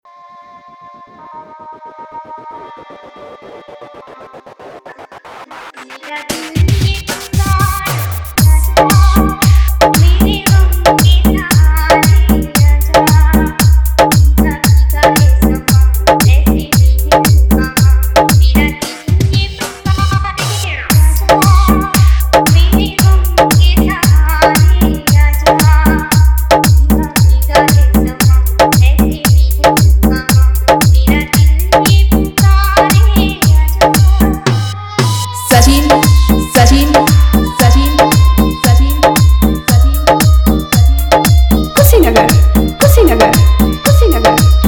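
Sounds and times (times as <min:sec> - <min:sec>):
90s Hindi DJ remix song: 0:00.1 - 0:44.6
hard dholki drum vibration: 0:06.4 - 0:44.6.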